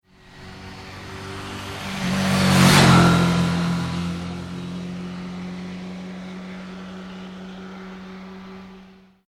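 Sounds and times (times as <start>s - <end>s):
Suzuki 650 motorbike passing fast: 0.1s - 9.2s.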